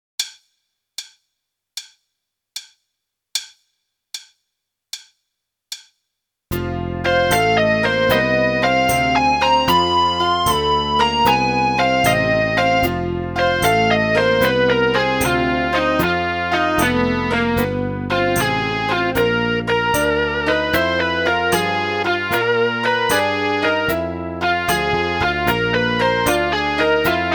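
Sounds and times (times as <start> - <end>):
blues music: 6.5 - 27.3.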